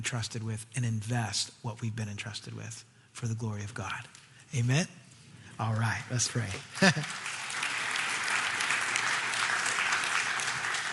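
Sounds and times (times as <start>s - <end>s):
speech: 0.0s - 5.0s, 5.6s - 7.4s
audience clapping after a sermon: 6.3s - 10.9s.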